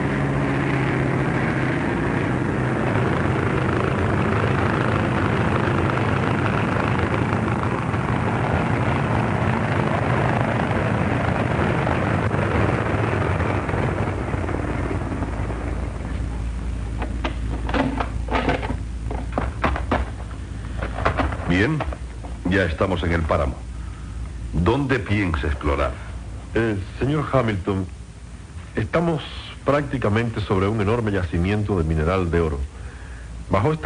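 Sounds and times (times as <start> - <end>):
rattling bursts: 0.0 - 22.5
airplane engine droning as the aircraft comes in to land: 0.0 - 33.8
speech: 22.6 - 23.7, 24.7 - 28.0, 28.8 - 32.7, 33.5 - 33.8.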